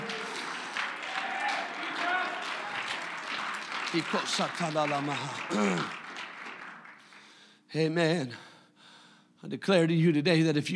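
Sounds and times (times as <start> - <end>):
people clapping hands: 0.0 - 7.5
people shouting unto God: 1.0 - 2.6
speech: 3.9 - 6.0, 7.7 - 8.5, 9.4 - 10.7.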